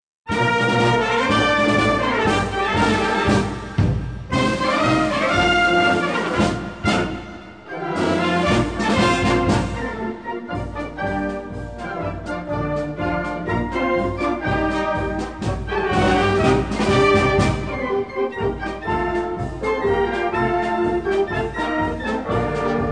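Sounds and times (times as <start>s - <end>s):
march music: 0.3s - 22.8s.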